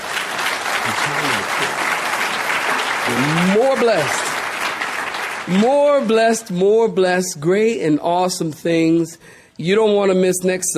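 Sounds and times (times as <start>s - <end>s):
audience clapping: 0.0s - 6.7s
speech: 0.9s - 1.8s, 3.1s - 4.3s, 5.5s - 10.7s.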